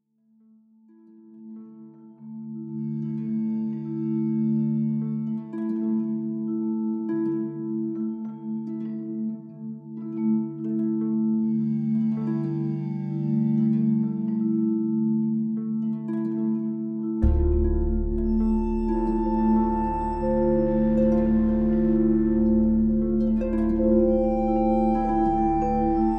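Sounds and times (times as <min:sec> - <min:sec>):
beatless music: 0:02.8 - 0:26.1.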